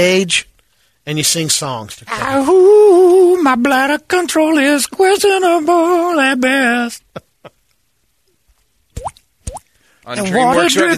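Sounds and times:
speech: 0:00.0 - 0:07.0, 0:10.1 - 0:10.9
water dripping: 0:09.0 - 0:09.7.

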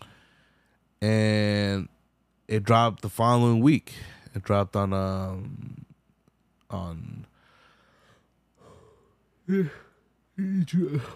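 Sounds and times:
speech: 0:01.0 - 0:01.5, 0:02.5 - 0:05.8, 0:06.7 - 0:07.3, 0:09.5 - 0:11.1
person yawning: 0:08.6 - 0:10.0.

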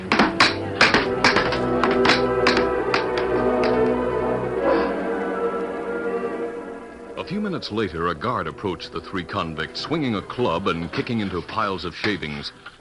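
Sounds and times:
hammering on a wooden box: 0:00.0 - 0:03.2
steady tonal hum: 0:00.0 - 0:12.7
speech: 0:07.4 - 0:12.7.

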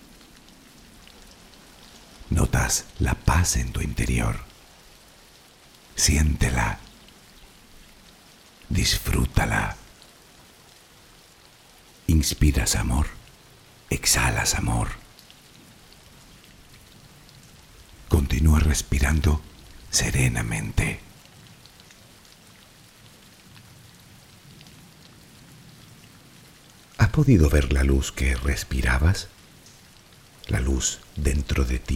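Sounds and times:
rain falling: 0:00.0 - 0:31.9
speech: 0:02.3 - 0:04.5, 0:06.0 - 0:06.8, 0:08.7 - 0:09.8, 0:12.2 - 0:13.2, 0:13.9 - 0:15.0, 0:18.7 - 0:21.1, 0:27.2 - 0:29.4, 0:30.5 - 0:31.9.

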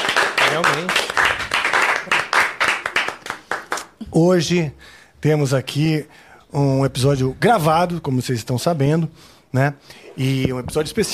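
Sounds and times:
clapping: 0:00.0 - 0:04.0
speech: 0:00.6 - 0:01.5, 0:04.2 - 0:11.1.

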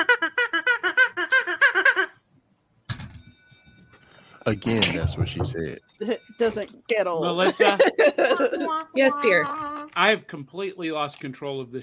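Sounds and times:
rubber chicken squeak: 0:00.0 - 0:02.2
laughter: 0:04.5 - 0:05.6, 0:07.2 - 0:09.6
speech: 0:04.5 - 0:11.8.

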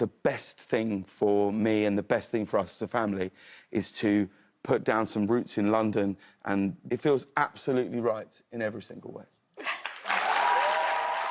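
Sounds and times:
speech: 0:00.0 - 0:09.8
excited whoops: 0:09.6 - 0:11.2
crowd applauding: 0:09.8 - 0:11.2.

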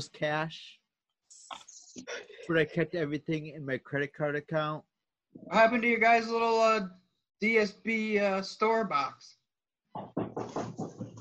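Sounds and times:
speech: 0:00.0 - 0:00.8, 0:01.5 - 0:09.4, 0:10.0 - 0:11.0
knocking: 0:10.0 - 0:11.1.

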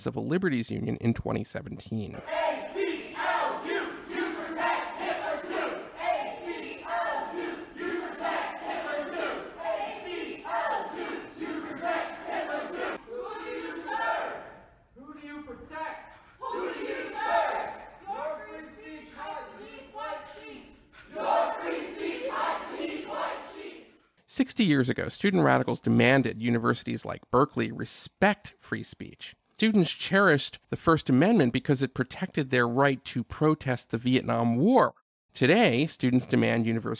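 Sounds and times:
speech: 0:00.0 - 0:02.7, 0:24.4 - 0:36.9
protest crowd shouting down a speaker: 0:02.2 - 0:24.0.

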